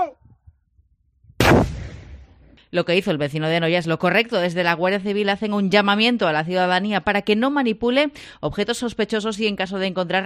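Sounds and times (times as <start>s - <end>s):
controlled detonation of explosive devices by a bomb disposal team in a Noia quarry: 1.4s - 2.6s
speech: 2.7s - 10.2s.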